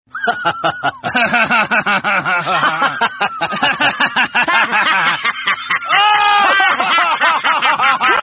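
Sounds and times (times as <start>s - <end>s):
laughing: 0.1s - 8.2s.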